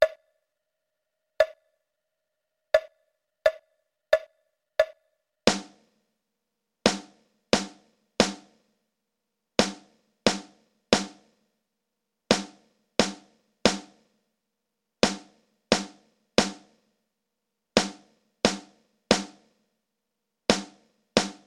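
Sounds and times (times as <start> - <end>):
drums: 4.2 - 6.0, 6.8 - 8.7, 9.6 - 11.4, 12.3 - 14.2, 15.0 - 16.9, 17.8 - 19.6, 20.5 - 21.4.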